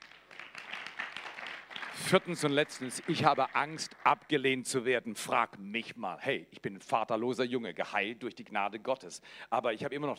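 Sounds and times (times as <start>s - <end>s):
audience clapping: 0.0s - 4.8s
speech: 2.0s - 10.1s.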